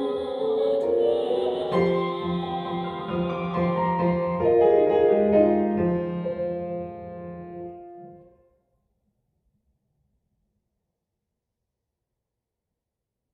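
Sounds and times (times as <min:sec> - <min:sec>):
French chanson: 0:00.0 - 0:08.3.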